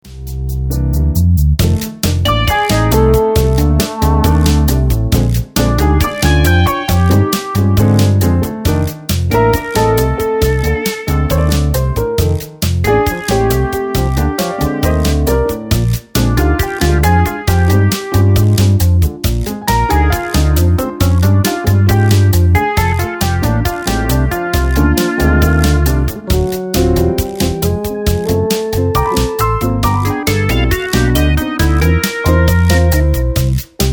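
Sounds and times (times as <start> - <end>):
blues music: 0.1 - 33.9.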